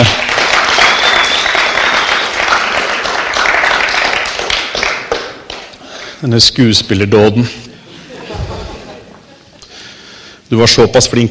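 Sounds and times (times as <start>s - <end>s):
audience applause: 0.0s - 5.7s
speech: 6.2s - 7.7s, 10.5s - 11.2s
laughter: 7.7s - 9.7s.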